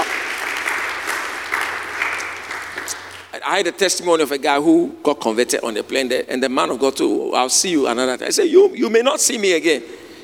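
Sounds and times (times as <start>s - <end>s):
audience clapping hands in praise: 0.0s - 3.4s
speech: 3.4s - 10.0s.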